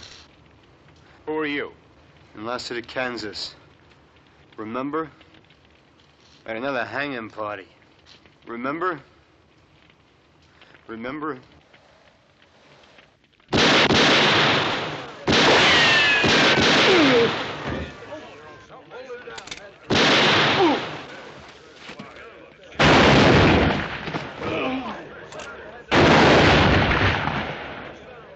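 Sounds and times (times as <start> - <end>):
speech: 1.3 - 1.8, 2.4 - 3.6, 4.6 - 5.2, 6.4 - 9.1, 10.9 - 11.5, 16.9 - 17.5
gunshots in a western drama: 13.5 - 18.2, 19.8 - 21.4, 22.8 - 24.7, 25.4 - 28.3.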